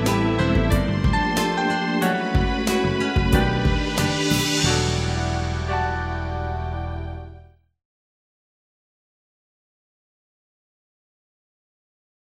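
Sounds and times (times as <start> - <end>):
easy listening and classical music: 0.0 - 7.6.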